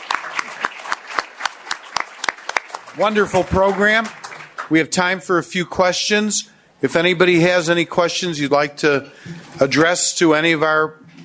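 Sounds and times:
panel audience clapping: 0:00.0 - 0:05.1
speech: 0:03.0 - 0:11.0.

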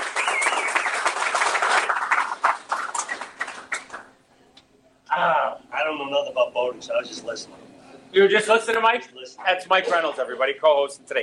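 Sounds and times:
crowd clapping in a round of applause: 0:00.0 - 0:04.2
speech: 0:06.3 - 0:11.2.

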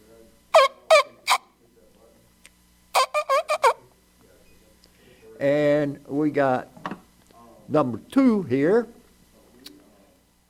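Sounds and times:
hunting locator call blown in squawking blasts: 0:00.5 - 0:01.5, 0:02.9 - 0:03.8
speech: 0:05.4 - 0:06.7, 0:07.7 - 0:09.0.

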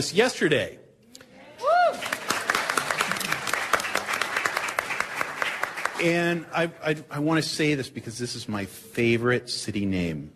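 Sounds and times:
speech: 0:00.0 - 0:00.8, 0:06.0 - 0:10.3
audience applause: 0:01.8 - 0:06.4.

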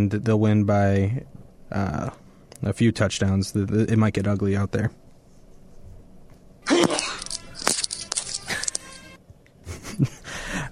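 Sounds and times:
speech: 0:00.0 - 0:05.0
man sneezing: 0:06.6 - 0:07.2.

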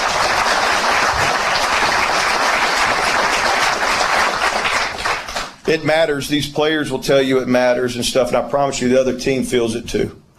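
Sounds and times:
audience applause: 0:00.0 - 0:05.7
speech: 0:05.7 - 0:10.3.

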